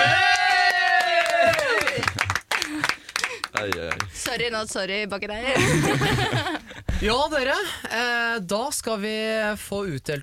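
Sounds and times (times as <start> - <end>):
audience applause: 0.0 - 4.1
speech: 3.6 - 10.2
laughter: 5.5 - 6.9.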